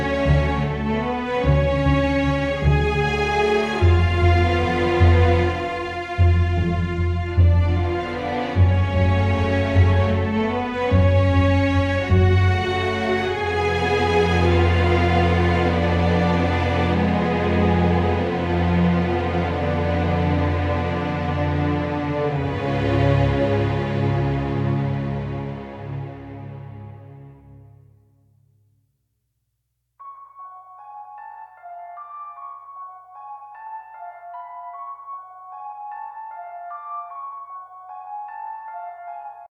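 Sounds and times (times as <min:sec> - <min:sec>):
suspense tension music: 0:00.0 - 0:27.7.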